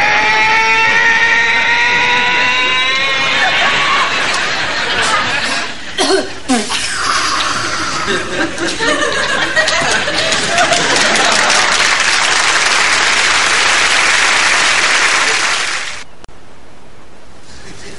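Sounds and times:
laughter: 0:00.2 - 0:15.7
girl imitating a vacuum cleaner: 0:06.5 - 0:07.5.

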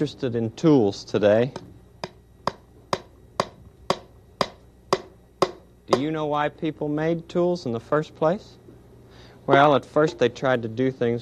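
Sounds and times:
speech: 0:00.0 - 0:01.7, 0:05.9 - 0:08.6, 0:09.5 - 0:11.2
hammering a nail into wood: 0:02.0 - 0:06.1.

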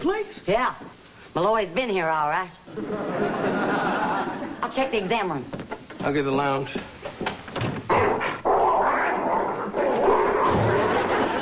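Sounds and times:
speech: 0:00.0 - 0:03.6, 0:04.6 - 0:07.0
laughter: 0:02.7 - 0:04.6, 0:10.4 - 0:11.3
dog growling: 0:07.9 - 0:11.3.

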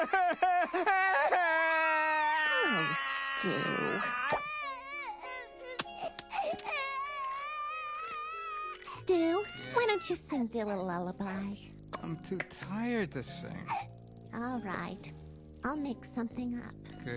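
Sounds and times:
speech: 0:00.0 - 0:01.4, 0:02.7 - 0:04.2, 0:10.0 - 0:13.8, 0:14.4 - 0:17.1
baby crying: 0:00.0 - 0:10.2.

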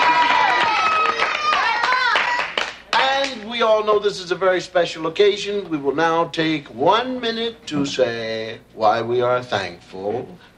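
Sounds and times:
high-pitched cheering and whooping voices: 0:00.0 - 0:02.8
small group clapping: 0:00.0 - 0:03.5
speech: 0:03.6 - 0:10.5.

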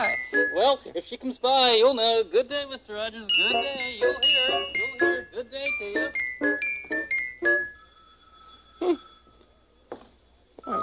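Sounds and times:
speech: 0:00.0 - 0:06.6, 0:08.8 - 0:09.1
telephone ringing: 0:03.3 - 0:09.4.

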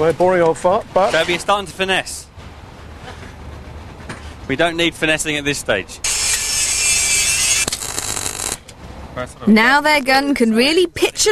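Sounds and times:
speech: 0:00.0 - 0:02.3, 0:04.5 - 0:06.1, 0:09.2 - 0:11.3
metal grinding: 0:06.0 - 0:08.7.

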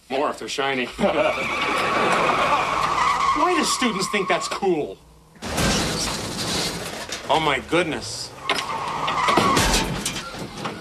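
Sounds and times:
speech: 0:00.1 - 0:05.5, 0:07.3 - 0:08.4
laughter: 0:00.9 - 0:03.4
car engine while ramming another car: 0:00.9 - 0:10.7
tires skidding: 0:00.9 - 0:10.7.

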